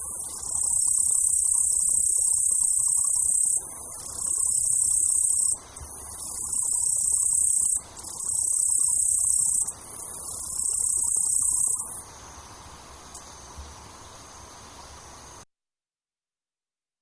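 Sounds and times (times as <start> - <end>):
Japanese bush cricket song: 0.0 - 13.6
faint hiss: 0.0 - 15.5.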